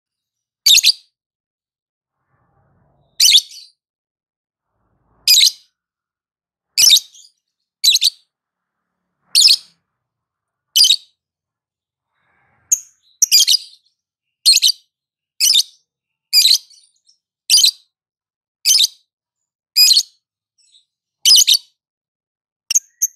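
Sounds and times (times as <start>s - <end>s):
lovebird chirping, trilling and ticking: 0.6s - 1.1s, 3.1s - 3.8s, 5.3s - 5.7s, 6.8s - 8.3s, 9.4s - 9.7s, 10.8s - 11.2s, 12.4s - 17.8s, 18.6s - 19.1s, 19.8s - 21.7s, 22.7s - 23.1s.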